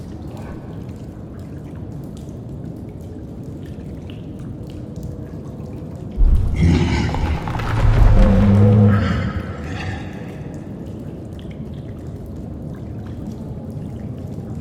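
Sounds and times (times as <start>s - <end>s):
cave ambience: 0.0s - 3.4s, 5.7s - 14.4s.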